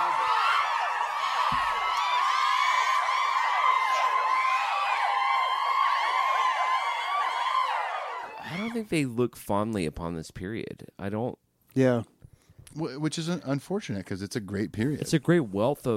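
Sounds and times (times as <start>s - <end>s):
canned applause: 0.0s - 8.8s
speech: 8.8s - 12.1s, 12.8s - 15.9s.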